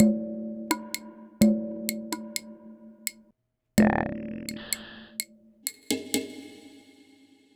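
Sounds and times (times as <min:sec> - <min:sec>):
electronic percussion: 0:00.0 - 0:03.2, 0:03.8 - 0:07.2.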